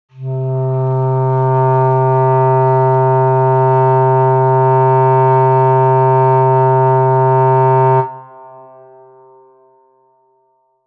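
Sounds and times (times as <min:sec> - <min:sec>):
clarinet: 0:00.1 - 0:09.6.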